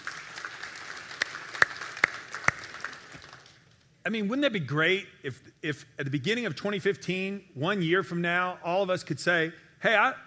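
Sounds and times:
audience applause: 0.0s - 3.6s
speech: 4.0s - 10.2s.

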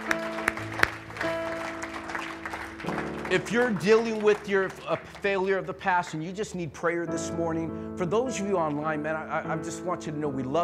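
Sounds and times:
audience applause: 0.0s - 5.7s
speech: 3.3s - 10.6s.

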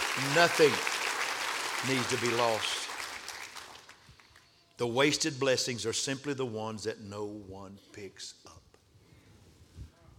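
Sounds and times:
audience clapping: 0.0s - 4.5s
speech: 0.2s - 0.9s, 1.8s - 2.8s, 4.8s - 8.6s.

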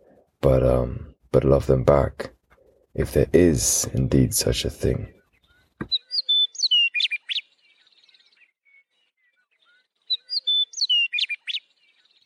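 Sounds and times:
speech: 0.4s - 2.4s, 3.0s - 5.2s
Western Meadowlark song: 5.2s - 12.2s.

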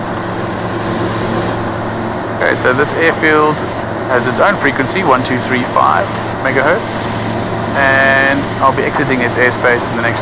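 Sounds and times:
light aircraft 115 horsepower Rotax engine in flight: 0.0s - 10.1s
speech: 2.5s - 7.1s, 7.8s - 10.1s.

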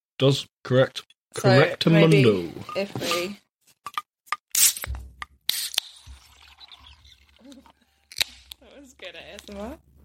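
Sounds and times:
speech: 0.2s - 3.4s, 9.0s - 9.9s
Guinness can opening with metallic clicks and hiss: 4.5s - 6.2s
Guinness beer pouring into a glass: 6.0s - 7.8s.

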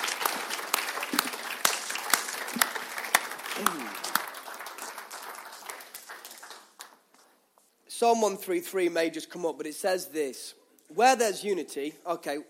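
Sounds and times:
audience applause: 0.0s - 7.1s
speech: 8.0s - 12.4s.

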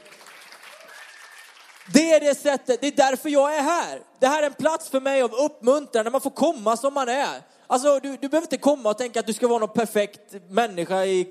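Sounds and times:
audience applause: 0.0s - 2.1s
speech: 1.9s - 11.2s.

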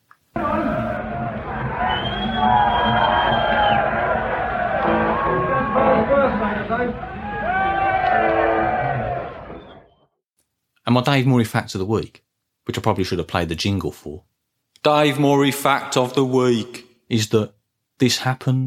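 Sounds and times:
concert crowd cheering and whooping: 0.4s - 9.9s
speech: 10.9s - 18.6s.

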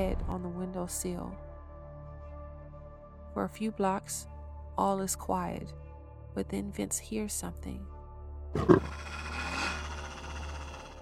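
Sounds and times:
speech: 0.0s - 1.5s, 3.4s - 5.8s, 6.4s - 7.9s, 8.5s - 9.3s
growling: 8.6s - 11.0s.

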